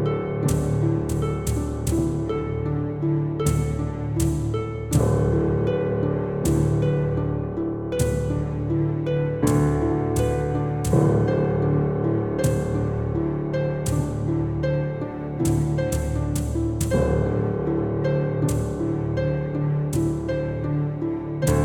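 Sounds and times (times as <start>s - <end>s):
music: 0.0s - 21.6s.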